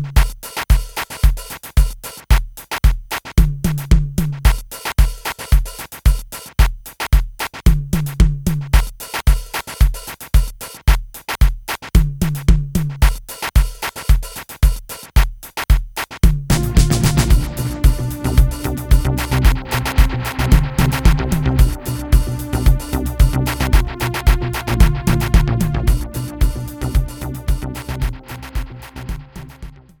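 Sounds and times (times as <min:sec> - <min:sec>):
overdubbed drums: 0:00.0 - 0:29.9
synth: 0:16.5 - 0:29.6.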